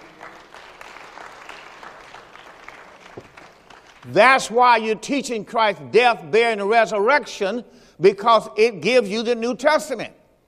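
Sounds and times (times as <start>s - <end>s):
audience clapping: 0.0s - 4.6s
speech: 4.0s - 10.2s.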